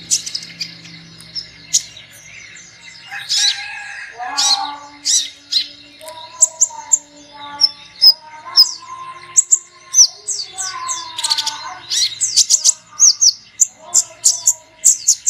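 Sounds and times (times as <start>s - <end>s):
sunbird calls: 0.0s - 15.2s.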